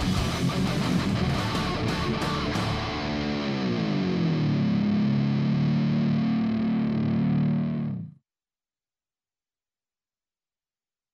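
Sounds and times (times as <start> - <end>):
heavy metal music: 0.0 - 8.1.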